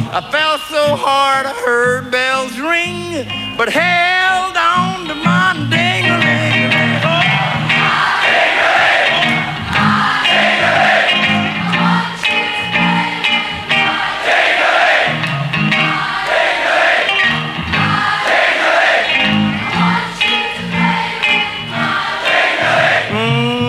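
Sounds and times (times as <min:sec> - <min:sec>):
speech: 0:00.1 - 0:05.9
crowd singing along: 0:04.8 - 0:23.6.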